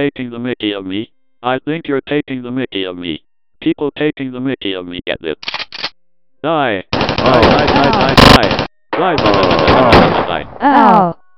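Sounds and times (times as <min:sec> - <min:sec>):
speech: 0:00.0 - 0:05.8, 0:06.4 - 0:11.2
rapid automatic gunfire: 0:06.9 - 0:10.4.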